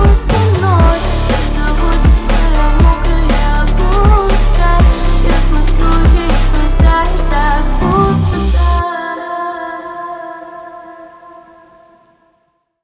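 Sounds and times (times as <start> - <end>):
phonk remix: 0.0 - 9.2.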